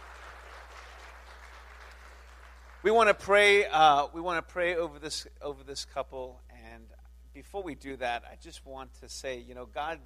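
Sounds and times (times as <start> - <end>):
audience applause: 0.0 - 2.8
speech: 2.8 - 10.0.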